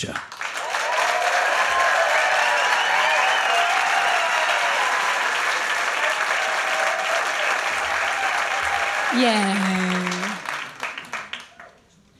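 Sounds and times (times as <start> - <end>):
audience applause welcoming a band onto the stage: 0.0 - 11.8
speech: 9.2 - 10.0.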